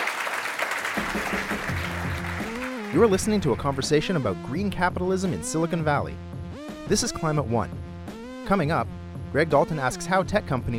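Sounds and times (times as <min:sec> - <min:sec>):
applause: 0:00.0 - 0:03.2
speech: 0:02.9 - 0:06.3, 0:06.9 - 0:07.8, 0:08.5 - 0:10.7.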